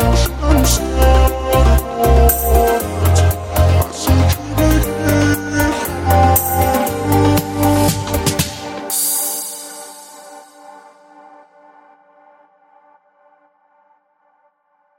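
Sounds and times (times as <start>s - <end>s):
sad music: 0.0s - 10.9s.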